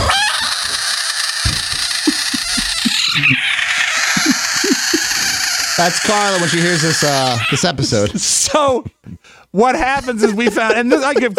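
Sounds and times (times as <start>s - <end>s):
South American budget frog defense scream: 0.0s - 7.8s
laughter: 1.8s - 11.3s
speech: 5.8s - 11.3s.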